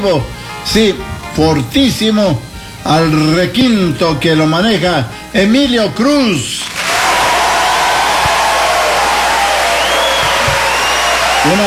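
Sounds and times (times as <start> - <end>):
speech: 0.0 - 6.8, 11.4 - 11.6
audience applause: 6.6 - 11.6
faint whistles and cheers: 6.8 - 11.6.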